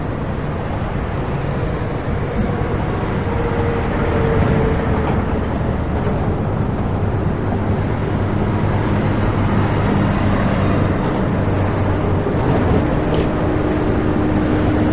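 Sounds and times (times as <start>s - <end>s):
highway traffic at a freeway overpass: 0.0s - 14.9s.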